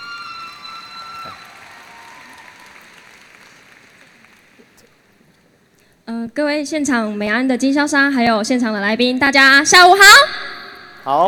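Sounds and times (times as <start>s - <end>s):
audience applause: 0.0s - 5.2s
speech: 6.1s - 10.4s, 11.1s - 11.2s.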